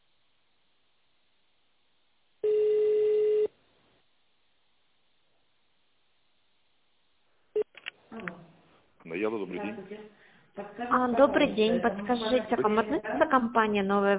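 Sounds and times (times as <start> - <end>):
long steady office phone line tone: 2.4 - 3.6
speech: 9.1 - 14.1.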